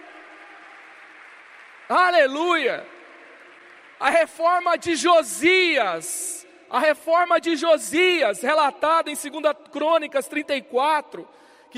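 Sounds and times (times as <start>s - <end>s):
audience applauding: 0.0s - 5.7s
speech: 1.9s - 3.0s, 4.0s - 11.7s.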